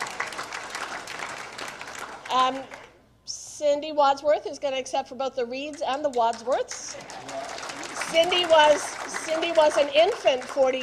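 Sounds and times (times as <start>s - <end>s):
audience applause: 0.0s - 2.3s, 7.0s - 10.8s
speech: 2.3s - 7.4s, 8.1s - 10.8s.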